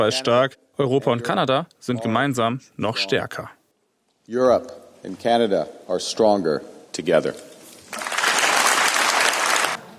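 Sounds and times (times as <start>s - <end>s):
speech: 0.0s - 3.6s, 4.3s - 8.0s
applause in the European Parliament in Strasbourg for Carney: 7.9s - 9.8s.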